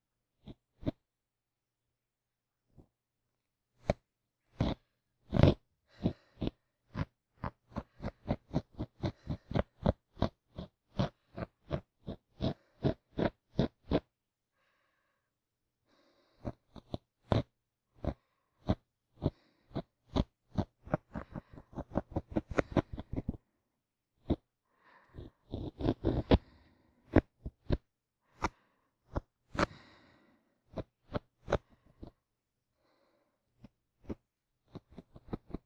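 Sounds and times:
ear cleaning sounds on the left: 0:03.8 - 0:14.1, 0:16.4 - 0:23.4, 0:24.2 - 0:30.0, 0:30.7 - 0:32.2, 0:33.6 - 0:35.6
sleeping breath for restful sleep: 0:04.5 - 0:10.0, 0:14.6 - 0:17.4, 0:18.0 - 0:23.5, 0:24.3 - 0:34.2.

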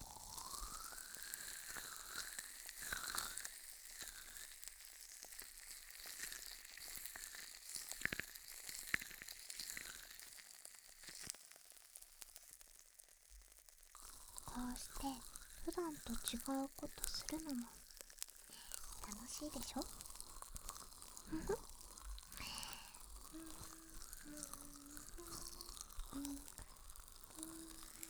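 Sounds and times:
irregular crackles and sharper pops: 0:00.0 - 0:28.0
steady bright fizzing hiss: 0:14.2 - 0:28.0
speech: 0:14.8 - 0:17.8, 0:19.3 - 0:20.0, 0:21.3 - 0:21.7, 0:23.4 - 0:25.5, 0:26.1 - 0:26.5.

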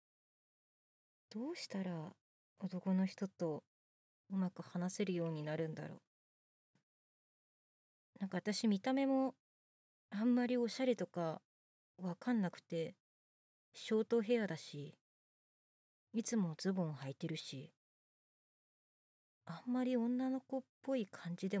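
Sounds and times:
boyish new female voice actress performing: 0:01.3 - 0:03.7, 0:04.3 - 0:06.1, 0:08.2 - 0:09.4, 0:10.1 - 0:11.4, 0:12.0 - 0:13.0, 0:13.8 - 0:15.0, 0:16.2 - 0:17.8, 0:19.5 - 0:21.5.

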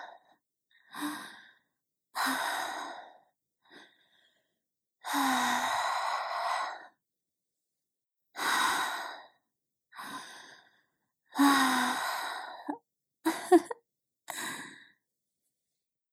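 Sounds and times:
breathing: 0:00.0 - 0:07.0, 0:08.4 - 0:12.8, 0:14.3 - 0:15.0.

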